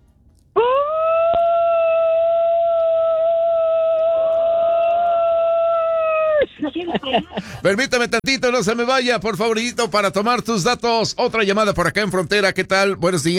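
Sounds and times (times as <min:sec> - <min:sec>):
caller's traditional Mexican grito: 0:00.6 - 0:06.5
laughter: 0:02.8 - 0:10.4
speech: 0:07.1 - 0:13.3.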